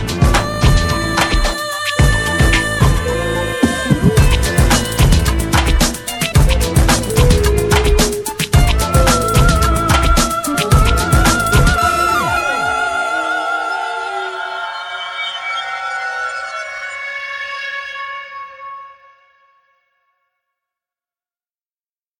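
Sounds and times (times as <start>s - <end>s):
instrumental music: 0.0s - 14.6s.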